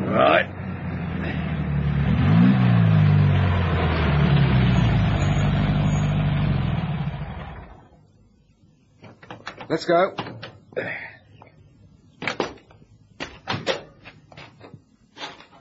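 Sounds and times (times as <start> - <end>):
car pulling up: 0.1 - 7.9
speech: 9.7 - 11.0.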